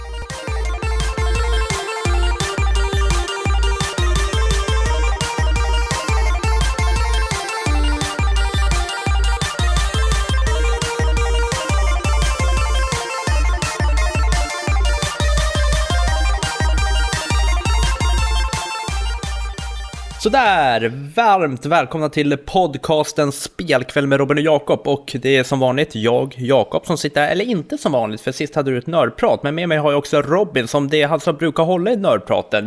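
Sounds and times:
upbeat electronic podcast intro jingle: 0.0s - 21.2s
speech: 20.3s - 32.6s.

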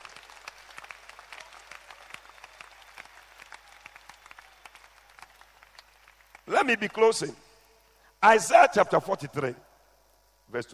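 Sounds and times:
audience clapping: 0.0s - 7.0s
speech: 6.5s - 7.4s, 8.2s - 9.6s, 10.5s - 10.7s.

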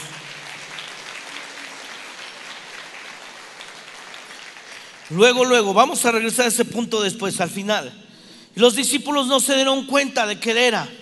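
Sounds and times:
audience applause: 0.0s - 5.2s
speech: 5.1s - 11.0s.

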